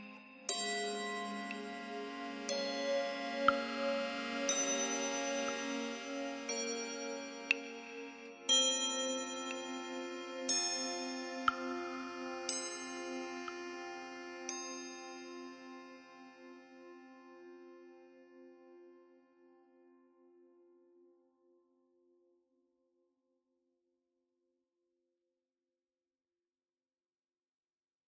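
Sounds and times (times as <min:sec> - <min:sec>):
carillon bells: 0:00.0 - 0:13.6, 0:14.5 - 0:15.9.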